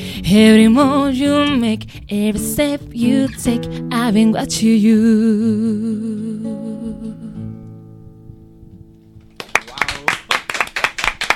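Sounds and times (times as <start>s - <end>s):
speech: 0.2s - 7.3s
studio audience applause: 9.4s - 11.3s.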